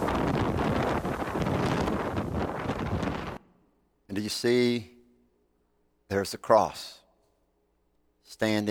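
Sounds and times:
Hurricane Ian wind roaring and buffeting the microphone: 0:00.0 - 0:03.4
speech: 0:04.2 - 0:04.9, 0:06.1 - 0:07.0, 0:08.3 - 0:08.6.

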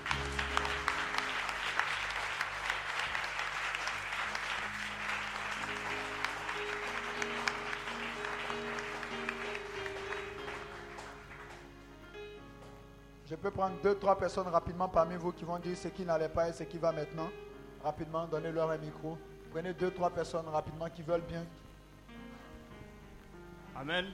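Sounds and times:
congregation applauding to acclaim Jesus for healings: 0:00.0 - 0:12.0
sustained musical tones: 0:04.4 - 0:12.1
speech: 0:13.4 - 0:21.6, 0:23.8 - 0:24.1.

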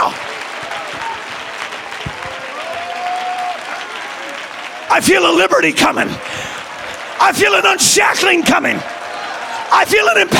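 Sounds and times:
audience clapping and applauding: 0:00.0 - 0:10.3
speech: 0:04.9 - 0:06.5, 0:07.2 - 0:08.9, 0:09.7 - 0:10.3.

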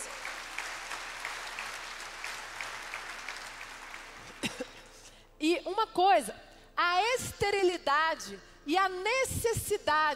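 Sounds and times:
audience clapping hands: 0:00.0 - 0:04.9
speech: 0:04.4 - 0:04.8, 0:05.4 - 0:10.1.

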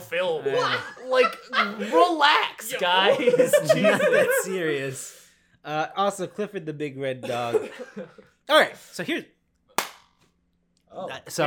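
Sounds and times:
laughter: 0:00.0 - 0:04.9, 0:07.2 - 0:08.3
speech: 0:00.1 - 0:09.4, 0:10.9 - 0:11.4
single hand clap: 0:09.8 - 0:10.2.

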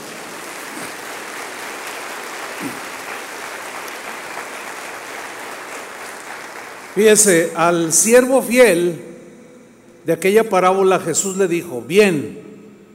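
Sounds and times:
audience applause: 0:00.0 - 0:07.4
speech: 0:02.6 - 0:02.8, 0:07.0 - 0:09.1, 0:10.1 - 0:12.5.

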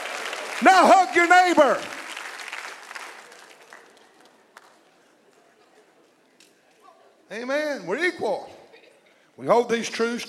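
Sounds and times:
audience clapping: 0:00.0 - 0:05.0
speech: 0:00.7 - 0:01.9, 0:07.3 - 0:08.6, 0:09.4 - 0:10.2.

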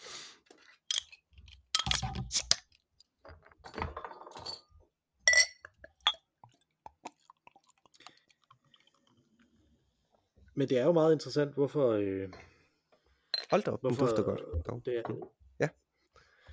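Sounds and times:
glassy clinks and clicks of a beer bottle being opened: 0:00.9 - 0:02.0, 0:05.3 - 0:07.8
beer fizzing from an opened bottle: 0:05.7 - 0:09.7
speech: 0:10.6 - 0:12.5, 0:13.5 - 0:15.8.

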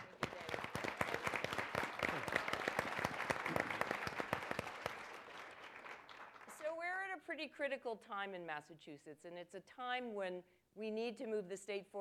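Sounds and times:
audience applause at a political event welcoming Martha Coakley: 0:00.0 - 0:06.5
speech: 0:07.4 - 0:11.9.

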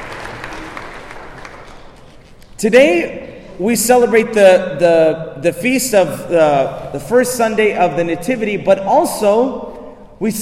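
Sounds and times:
hand clapping: 0:00.0 - 0:02.6
speech: 0:02.6 - 0:10.4.

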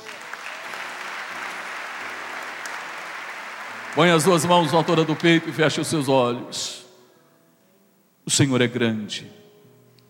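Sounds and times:
audience applause: 0:00.0 - 0:06.2
faint tonal sustained music: 0:00.0 - 0:10.0
speech: 0:03.9 - 0:06.8, 0:08.3 - 0:09.4.

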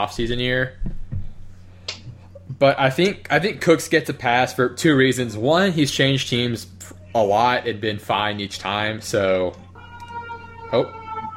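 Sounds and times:
speech: 0:00.0 - 0:00.9, 0:02.6 - 0:09.6, 0:10.7 - 0:11.0
ambulance siren wailing: 0:09.6 - 0:11.3.

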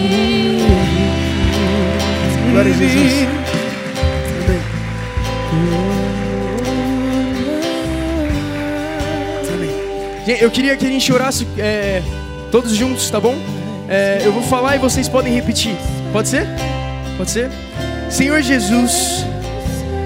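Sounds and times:
sustained musical chords: 0:00.0 - 0:19.6
audience applause: 0:00.6 - 0:11.2
speech: 0:02.6 - 0:03.6, 0:10.3 - 0:19.4.

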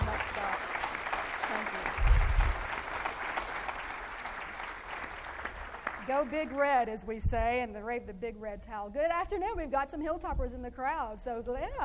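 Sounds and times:
audience applause welcoming speaker: 0:00.0 - 0:06.8
speech: 0:06.1 - 0:11.8.

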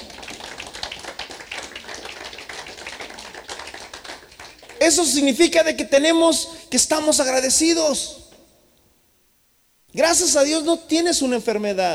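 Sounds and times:
audience applause: 0:00.0 - 0:05.0
speech: 0:04.8 - 0:08.2, 0:10.0 - 0:11.9.

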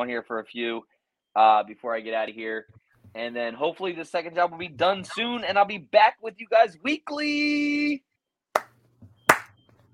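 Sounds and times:
speech: 0:00.0 - 0:08.1
slow clapping: 0:08.6 - 0:09.5.

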